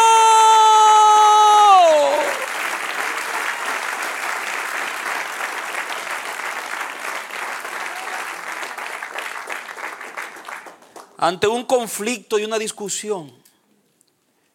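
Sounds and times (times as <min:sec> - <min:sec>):
audience applause: 0:01.0 - 0:11.2
speech: 0:11.2 - 0:13.4.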